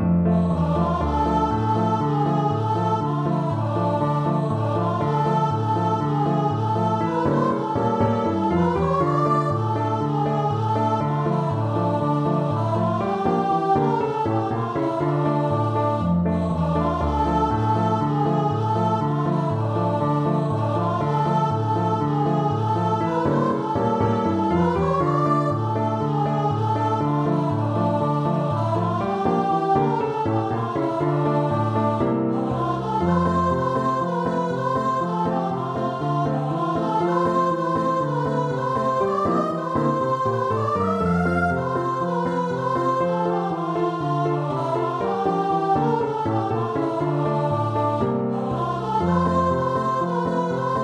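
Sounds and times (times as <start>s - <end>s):
unison choir singing: 0.1s - 50.8s.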